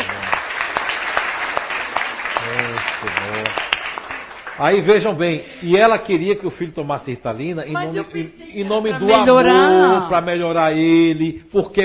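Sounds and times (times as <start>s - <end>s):
audience applause: 0.0s - 4.8s
speech: 4.6s - 11.8s.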